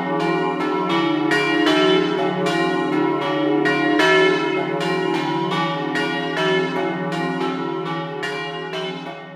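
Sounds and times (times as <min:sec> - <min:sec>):
bells ringing: 0:00.0 - 0:09.3.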